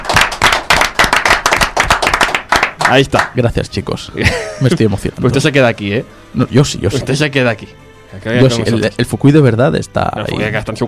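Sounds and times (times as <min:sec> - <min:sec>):
audience clapping during a tribute on a show: 0:00.0 - 0:03.5
speech: 0:02.9 - 0:10.8.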